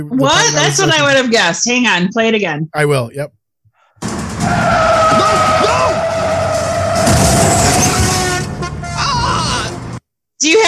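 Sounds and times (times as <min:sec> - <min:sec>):
speech: 0:00.0 - 0:03.4, 0:10.4 - 0:10.6
Jaguar car door breaking off: 0:04.0 - 0:08.6
Jaguar car braking: 0:04.0 - 0:10.0.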